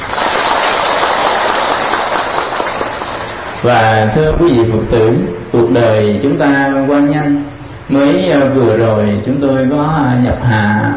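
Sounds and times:
audience applause: 0.0 - 3.5
speech: 3.6 - 10.9.

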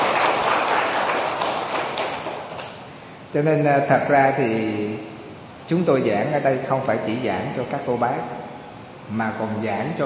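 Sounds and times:
audience applause: 0.0 - 2.5
speech: 3.3 - 5.1, 5.7 - 8.4, 9.1 - 10.0.

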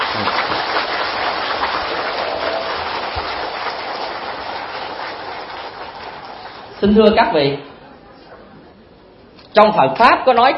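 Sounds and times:
audience applause: 0.0 - 6.9
speech: 6.8 - 7.7, 9.6 - 10.5.

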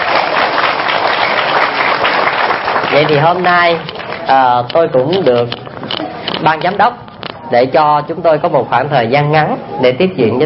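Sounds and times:
audience round of applause at a gathering: 0.0 - 4.4
speech: 3.0 - 5.6, 6.4 - 10.4.

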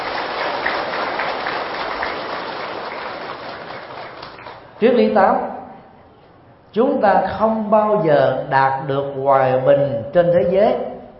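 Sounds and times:
big round of applause: 0.0 - 4.8
speech: 4.8 - 5.6, 6.8 - 10.9.

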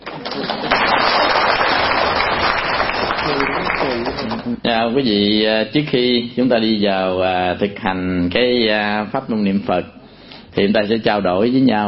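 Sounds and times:
audience clapping at a Buddhist dharma talk: 0.0 - 4.6
speech: 4.7 - 10.0, 10.6 - 11.8.

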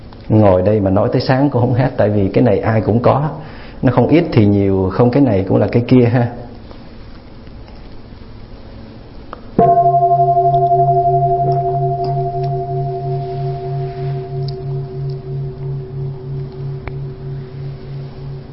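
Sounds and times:
speech: 0.3 - 6.5
large temple bell struck and ringing: 9.6 - 18.5.

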